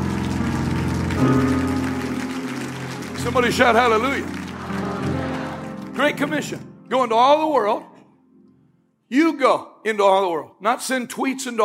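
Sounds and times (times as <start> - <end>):
audience clapping hands: 0.0 - 6.6
speech: 1.2 - 1.8, 3.2 - 4.4, 6.0 - 7.9, 9.1 - 11.6.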